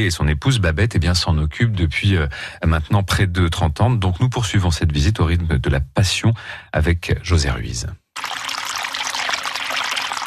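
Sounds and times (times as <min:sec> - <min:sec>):
speech: 0:00.0 - 0:08.4
spring water trickling and splashing: 0:08.2 - 0:10.2.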